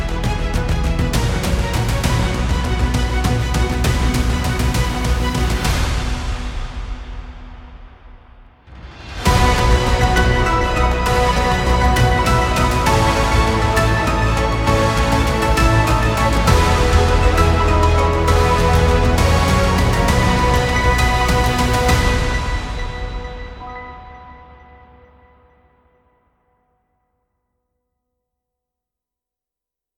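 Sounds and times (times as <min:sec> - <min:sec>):
news sport theme music: 0:00.0 - 0:07.8, 0:09.2 - 0:24.6.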